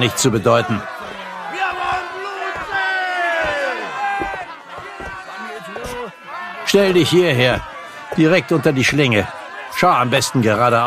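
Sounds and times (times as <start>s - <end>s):
speech: 0.0s - 0.9s, 6.7s - 10.8s
crowd jeering and shouting at execution: 0.0s - 10.8s
laughter: 0.0s - 10.8s
sharp thuds: 0.9s - 6.1s.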